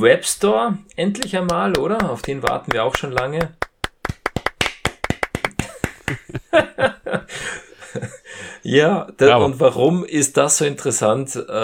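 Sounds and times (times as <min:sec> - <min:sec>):
speech: 0:00.0 - 0:03.6, 0:06.1 - 0:11.6
applause: 0:01.2 - 0:06.4.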